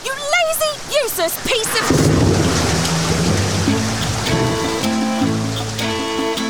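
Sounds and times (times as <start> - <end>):
heavy rain: 0.1 - 6.4
thunder: 1.5 - 6.3
sustained tonal sounds: 1.6 - 6.4.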